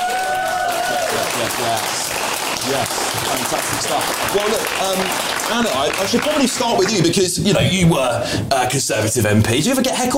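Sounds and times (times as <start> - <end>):
audience round of applause: 0.0 - 7.3
speech: 1.4 - 10.1.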